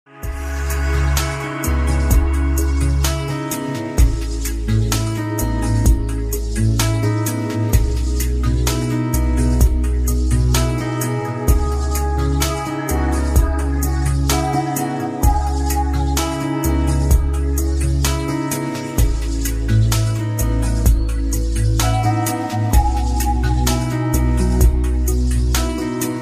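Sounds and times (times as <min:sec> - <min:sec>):
ambient remix music: 0:00.1 - 0:26.1.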